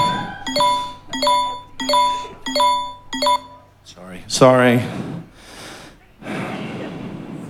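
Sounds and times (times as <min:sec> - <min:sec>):
app notification chime: 0:00.0 - 0:03.6
speech: 0:04.3 - 0:05.0.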